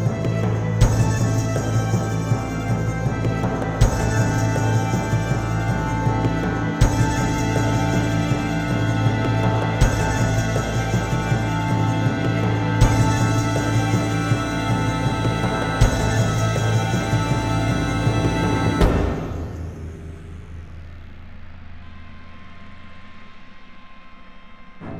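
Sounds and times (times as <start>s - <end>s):
RPG battle game music: 0.0s - 19.6s.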